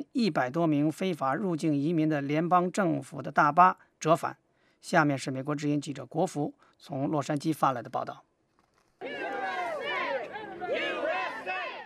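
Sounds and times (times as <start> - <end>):
speech: 0.1 - 8.3
street crowd chanting: 9.0 - 11.8.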